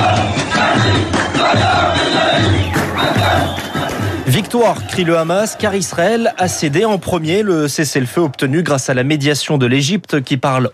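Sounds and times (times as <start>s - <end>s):
large crowd shouting and cheering outdoors: 0.0s - 7.7s
speech: 4.5s - 10.7s.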